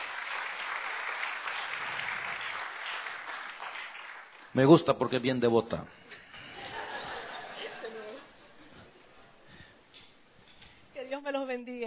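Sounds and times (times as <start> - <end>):
applause: 0.0 - 5.1
speech: 4.5 - 6.1
laughter: 6.1 - 9.0.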